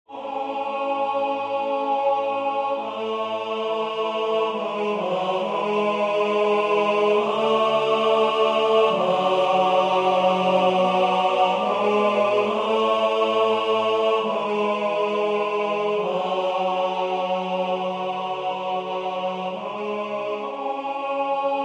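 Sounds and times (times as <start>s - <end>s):
tenor singing: 0.1s - 21.6s.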